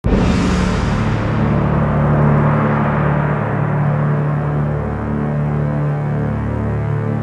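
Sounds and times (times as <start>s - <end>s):
gunshot: 0.0s - 5.7s
crash: 0.0s - 7.1s.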